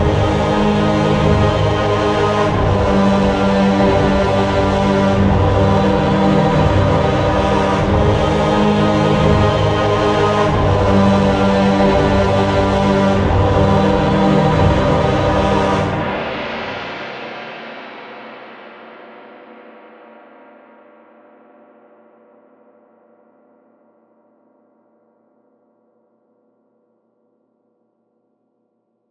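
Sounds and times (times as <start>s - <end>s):
small epic music: 0.0s - 17.4s.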